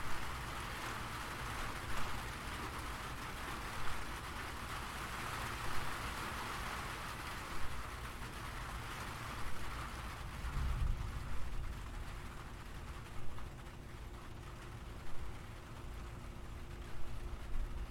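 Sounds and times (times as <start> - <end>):
gentle rain falling: 0.0 - 17.9
low rumble: 10.3 - 13.4.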